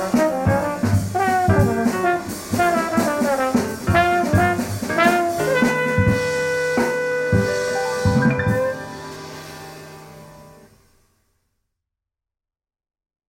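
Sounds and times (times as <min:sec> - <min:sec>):
blues in F at 176 BPM without bass: 0:00.0 - 0:10.6.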